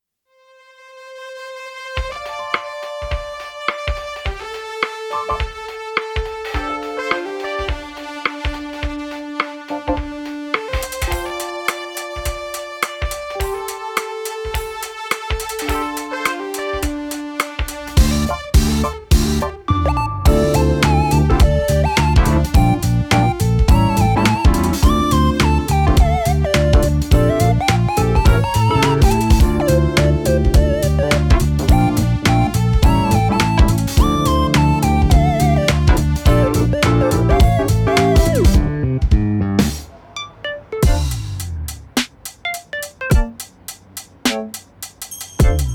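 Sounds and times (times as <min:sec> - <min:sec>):
lofi instrumental music: 0:01.9 - 0:45.7.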